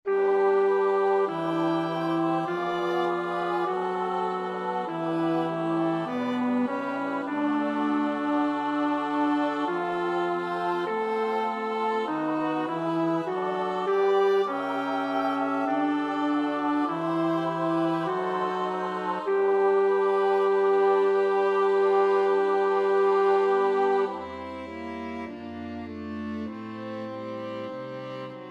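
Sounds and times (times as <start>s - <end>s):
bass choir part practice: 0.3s - 24.3s.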